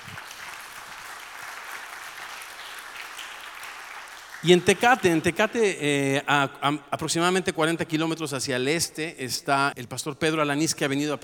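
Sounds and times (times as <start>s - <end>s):
audience applause: 0.0s - 5.2s
speech: 4.4s - 11.2s.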